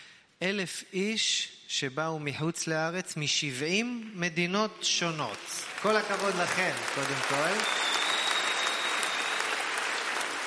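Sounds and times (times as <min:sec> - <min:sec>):
speech: 0:00.4 - 0:07.9
audience applause at an international conference: 0:05.3 - 0:10.4.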